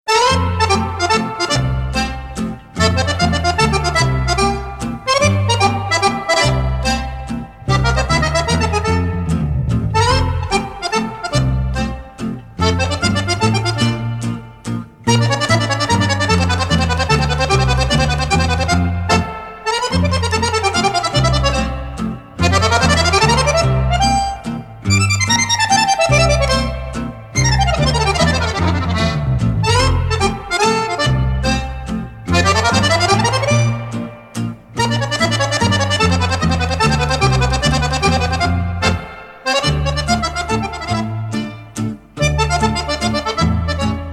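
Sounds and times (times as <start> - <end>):
mazurka: 0.1 - 44.1.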